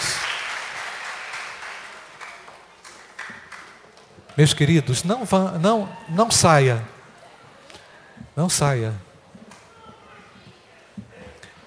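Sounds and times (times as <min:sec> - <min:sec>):
applause: 0:00.0 - 0:04.1
speech: 0:04.4 - 0:06.9, 0:08.4 - 0:09.1.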